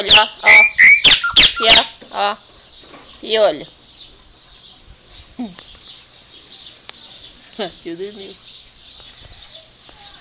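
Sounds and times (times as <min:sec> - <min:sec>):
speech: 0:00.0 - 0:00.8, 0:01.6 - 0:02.5, 0:03.2 - 0:03.8, 0:05.4 - 0:05.7, 0:07.6 - 0:08.5
Chopi blackbird song: 0:00.0 - 0:02.0.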